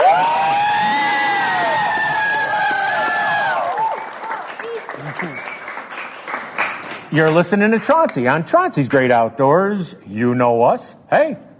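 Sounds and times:
audience cheering: 0.0 - 5.9
audience applause: 0.0 - 8.2
speech: 7.1 - 11.5.

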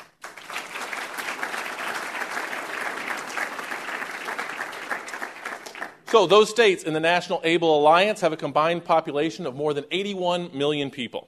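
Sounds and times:
audience applause: 0.0 - 6.3
speech: 6.1 - 11.2.

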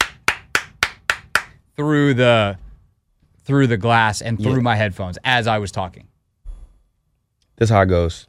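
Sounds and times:
loud hand claps: 0.0 - 1.6
speech: 1.8 - 2.6, 3.5 - 6.1, 7.6 - 8.2.

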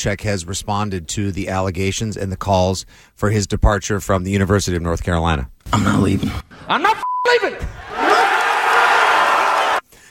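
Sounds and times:
speech: 0.0 - 8.4
people cheering in the background: 7.6 - 9.8.

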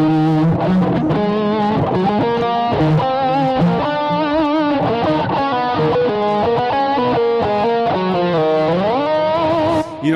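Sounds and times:
distorted electric guitar playing a Christmas tune with an effects unit: 0.0 - 10.1.

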